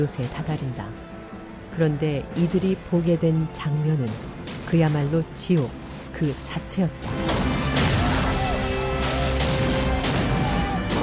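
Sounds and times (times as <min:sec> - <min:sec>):
speech: 0:00.0 - 0:01.1, 0:01.8 - 0:07.3
cannon fire bombarding a fort: 0:07.0 - 0:11.0.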